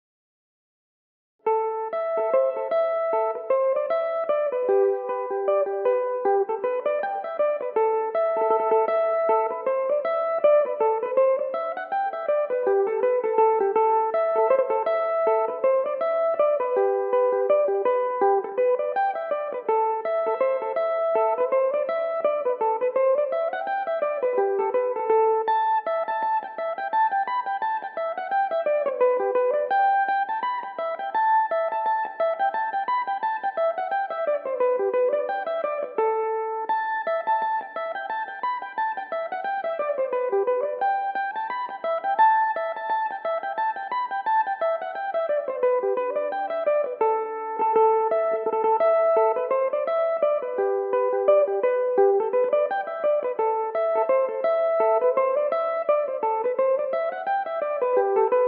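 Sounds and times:
Irish mandolin tunes in A dorian: 1.5s - 58.4s.

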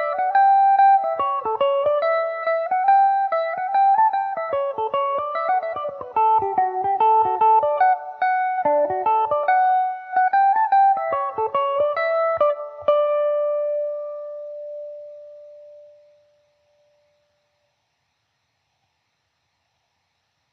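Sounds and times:
Irish mandolin playing a barndance in D major: 0.0s - 15.4s.

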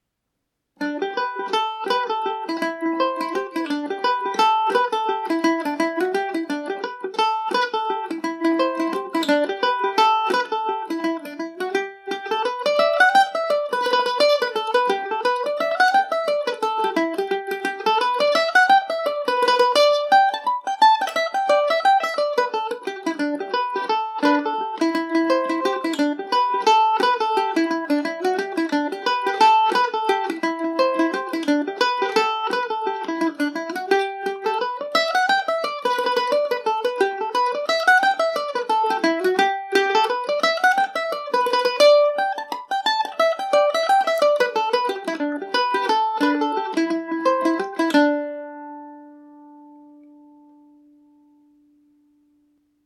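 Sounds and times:
mandolin tune in G major: 0.8s - 52.8s.

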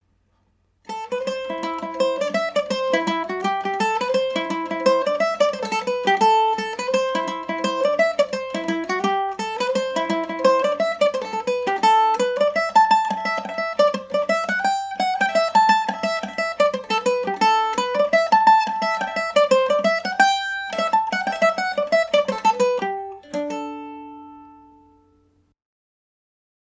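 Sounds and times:
Irish mandolin in A dorian: 0.8s - 25.5s.

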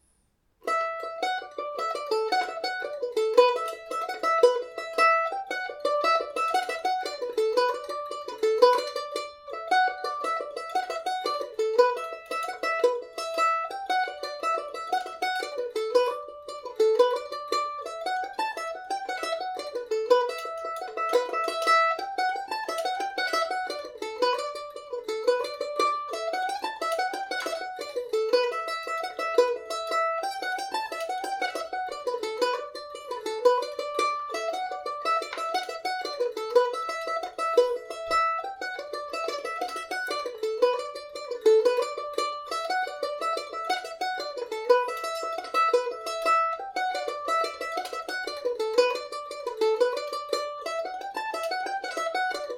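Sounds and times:
Irish mandolin playing in D: 0.0s - 52.5s.

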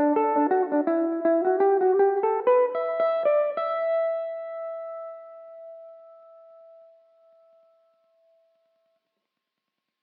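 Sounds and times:
Irish mandolin in E dorian: 0.0s - 6.1s.

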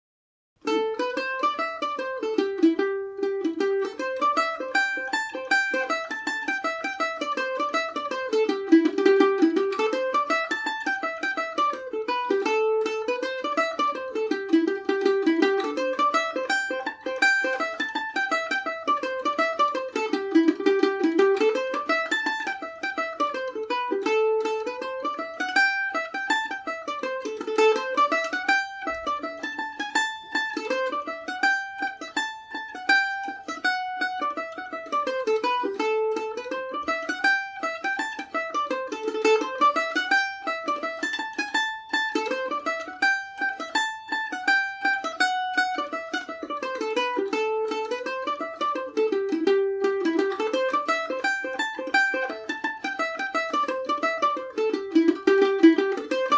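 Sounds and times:
Irish mandolin in A Dorian: 0.6s - 56.3s.

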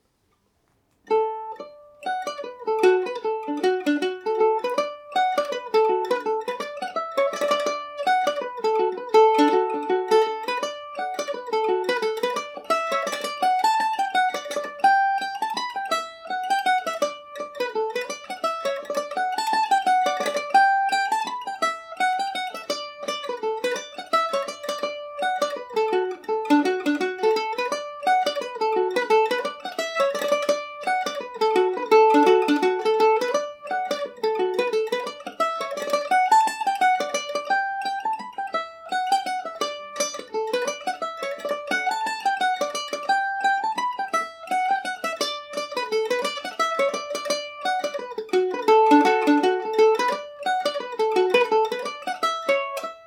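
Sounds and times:
Irish mandolin playing in D major: 0.0s - 53.0s.

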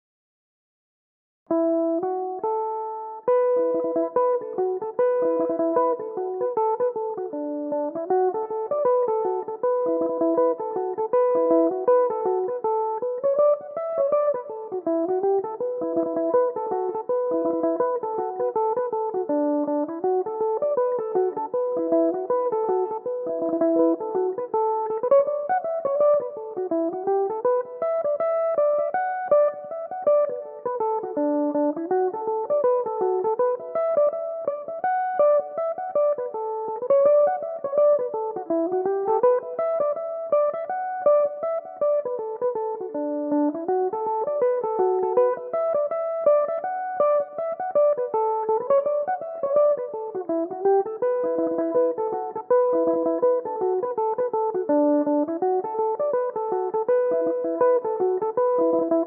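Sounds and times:
Irish mandolin tunes: 1.6s - 59.0s.

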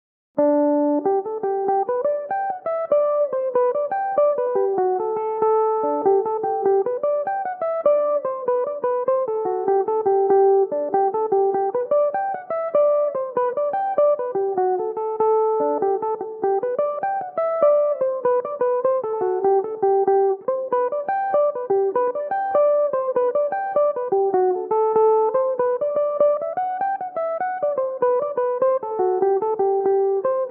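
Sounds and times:
mandolin playing a jig in G major: 0.4s - 30.4s.

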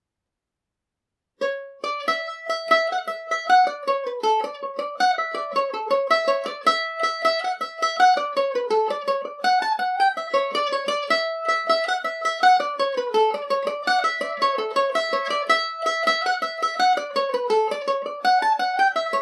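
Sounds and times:
Irish mandolin playing in D major: 1.4s - 19.2s.

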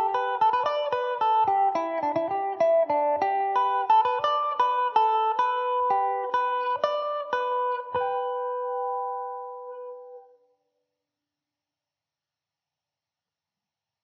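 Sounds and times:
electric mandolin in G major: 0.0s - 10.4s.

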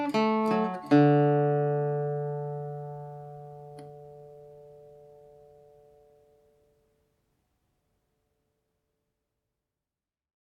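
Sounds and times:
Irish mandolin playing in D major: 0.0s - 6.4s.

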